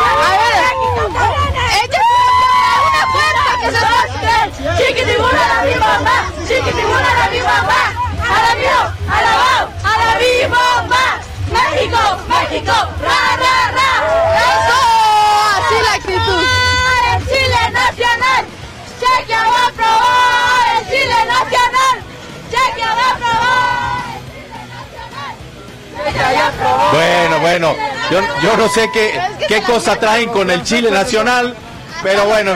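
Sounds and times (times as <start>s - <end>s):
excited yells of football fans: 0.0s - 25.4s, 26.0s - 29.5s
large crowd of football fans cheering and shouting in rain: 0.0s - 32.5s
speech: 27.4s - 32.5s.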